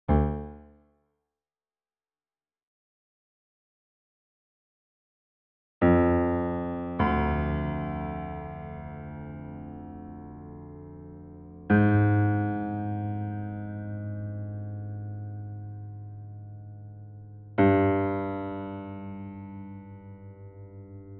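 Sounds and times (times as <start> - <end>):
piano: 0.1 - 0.8, 5.8 - 21.1.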